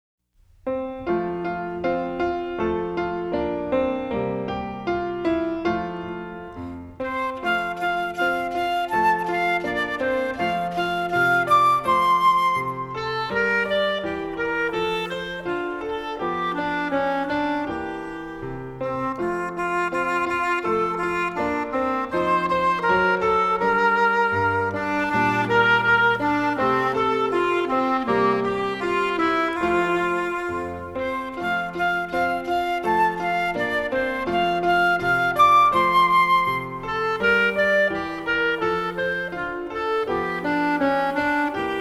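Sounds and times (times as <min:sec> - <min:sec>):
music: 0:00.3 - 0:41.7.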